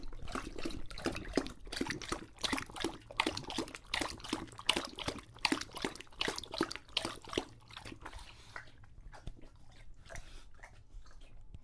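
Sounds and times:
English Bulldog drinking with splashy laps: 0.0s - 11.6s
English Bulldog throaty breathing: 8.0s - 11.3s.

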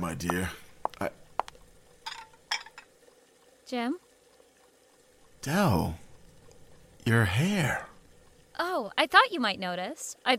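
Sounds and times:
speech: 0.0s - 1.2s, 3.7s - 4.0s, 5.4s - 6.0s, 7.0s - 7.9s, 8.6s - 10.3s
pots, dishes and cutlery clinking while cooking chops and string beans: 2.0s - 2.9s.

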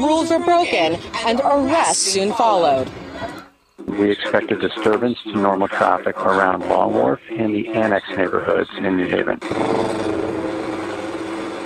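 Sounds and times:
speech: 0.0s - 10.1s
motorcycle engines revving: 9.4s - 11.6s.

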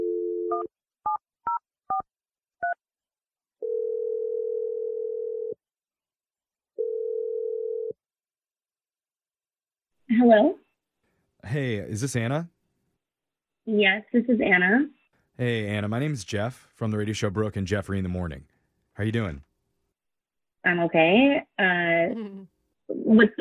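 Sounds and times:
speech: 0.6s - 0.9s, 10.1s - 10.6s, 11.5s - 12.6s, 13.6s - 19.5s, 20.6s - 23.3s
phone ringing tone: 3.6s - 5.6s, 6.8s - 8.0s.

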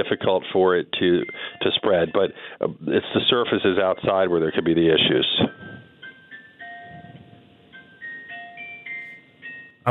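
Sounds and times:
speech: 0.0s - 5.6s
hospital chime announcing a baby's birth: 5.6s - 9.8s.

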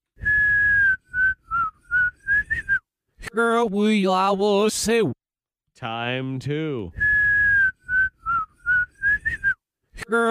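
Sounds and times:
whistled tune played backwards: 0.2s - 2.8s, 7.0s - 9.6s
speech: 3.4s - 5.2s, 5.8s - 7.2s, 10.1s - 10.2s.

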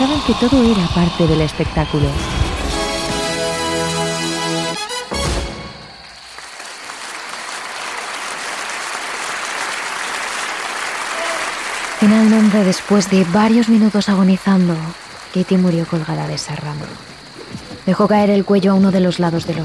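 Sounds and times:
spectators and jury applauding: 0.0s - 17.3s
speech: 0.1s - 2.3s, 12.5s - 17.1s, 17.8s - 19.6s.

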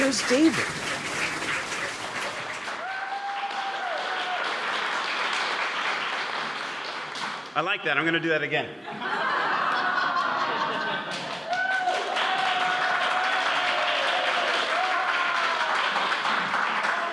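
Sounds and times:
scattered crowd voices: 0.0s - 2.7s
audience applause: 0.0s - 7.6s, 9.6s - 17.1s
speech: 0.1s - 1.0s, 7.6s - 9.2s
faint audience cheers: 2.7s - 4.6s, 11.4s - 16.1s, 16.7s - 17.1s
laughter: 8.8s - 11.5s.

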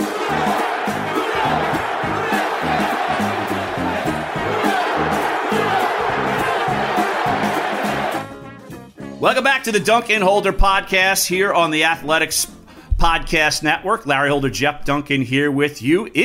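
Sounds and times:
football fans shouting a chant: 0.0s - 8.3s
speech: 9.2s - 16.2s.

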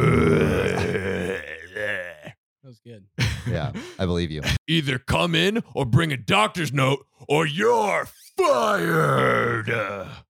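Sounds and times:
person growling angrily: 0.0s - 2.4s, 7.7s - 10.2s
speech: 3.0s - 10.2s.

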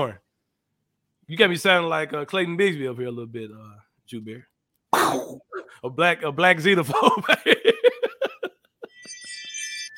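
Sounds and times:
speech: 0.0s - 0.2s, 1.3s - 7.9s
laughter: 6.9s - 9.2s
wind chime ringing: 8.8s - 9.9s.

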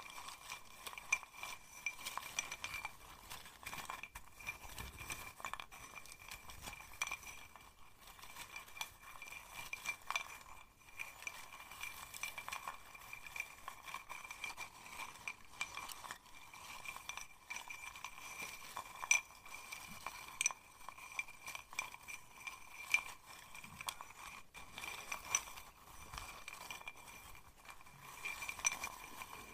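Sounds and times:
glass bottle, safety pins and seashell rattling and clinking: 0.0s - 29.5s.

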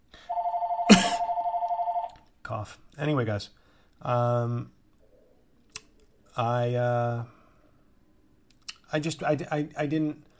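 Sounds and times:
phone ringing from incoming spam call: 0.2s - 2.2s
speech: 2.5s - 4.8s, 6.4s - 7.4s, 8.9s - 10.3s.

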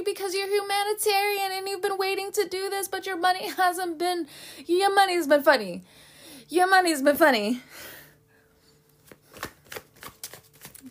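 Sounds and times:
speech: 0.0s - 7.9s
tarot cards being shuffled: 8.9s - 10.8s.

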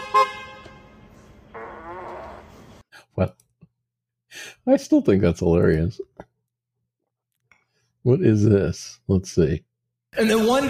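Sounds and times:
fart sound played as Tesla car horn: 1.5s - 2.6s
speech: 3.2s - 3.4s, 4.6s - 6.3s, 8.0s - 10.6s.

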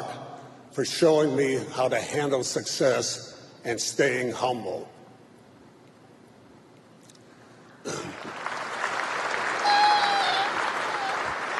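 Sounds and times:
speech: 0.8s - 5.0s
cough: 7.8s - 8.3s
audience clapping: 8.0s - 11.5s.

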